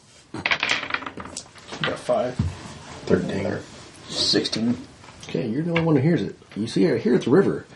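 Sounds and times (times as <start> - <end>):
percentile dice clattering on a tabletop: 0.4 - 1.5
speech: 2.1 - 2.5, 3.1 - 3.7, 4.3 - 7.7.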